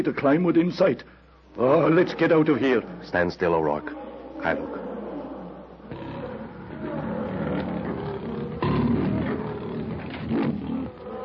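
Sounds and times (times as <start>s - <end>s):
speech: 0.0s - 4.9s
lion growling and roaring: 3.8s - 11.2s.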